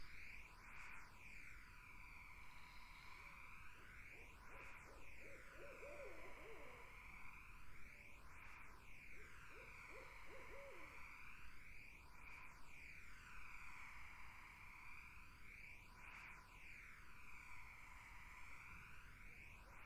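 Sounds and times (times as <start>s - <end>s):
insects droning: 0.0s - 19.8s
barred owls hooting: 4.9s - 6.9s, 9.5s - 11.0s.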